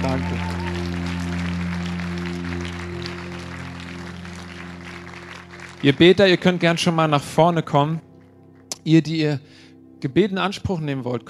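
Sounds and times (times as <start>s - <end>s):
audience clapping: 0.0s - 7.2s
sustained low keyboard chord: 0.0s - 11.2s
speech: 5.8s - 8.1s, 8.8s - 11.2s.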